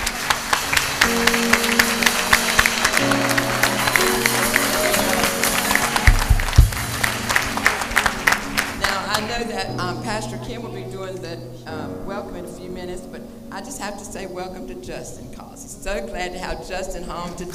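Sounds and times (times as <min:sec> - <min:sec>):
church congregation applauding the youth sponsors: 0:00.0 - 0:10.0
speech: 0:13.6 - 0:17.5.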